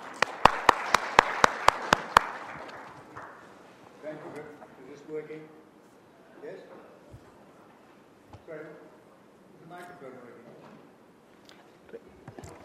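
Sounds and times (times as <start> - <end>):
audience applause: 0.0 - 3.6.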